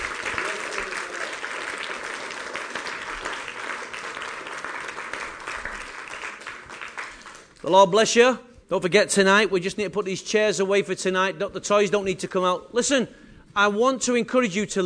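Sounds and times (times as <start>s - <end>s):
audience giving a standing ovation: 0.0s - 7.6s
speech: 7.6s - 14.8s.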